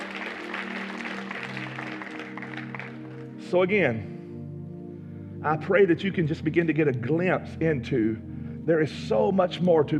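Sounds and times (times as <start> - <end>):
audience clapping: 0.0 - 3.4
speech: 3.5 - 4.1, 5.4 - 9.9.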